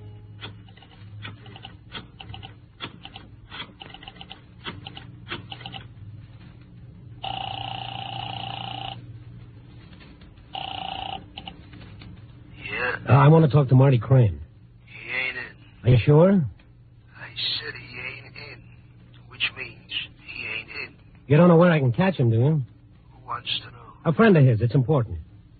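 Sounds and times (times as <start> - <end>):
telephone ringing on the other end through the receiver: 0.7 - 5.9, 7.2 - 9.0, 10.5 - 11.6
speech: 13.2 - 14.4, 16.0 - 16.6, 21.3 - 22.7, 24.0 - 25.2.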